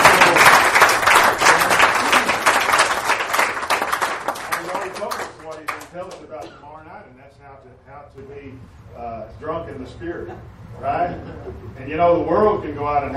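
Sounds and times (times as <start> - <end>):
audience applause: 0.0 - 5.9
speech: 9.8 - 13.1.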